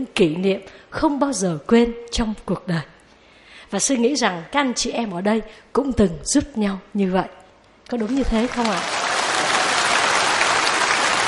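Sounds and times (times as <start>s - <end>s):
speech: 0.0s - 3.0s, 3.7s - 9.1s
audience applause during a talk by a monk: 8.0s - 11.2s.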